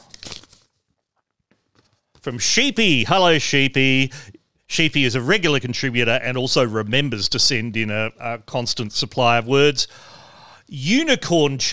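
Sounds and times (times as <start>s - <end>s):
paper being unwrapped: 0.0s - 0.8s
speech: 2.2s - 10.1s, 10.7s - 11.7s.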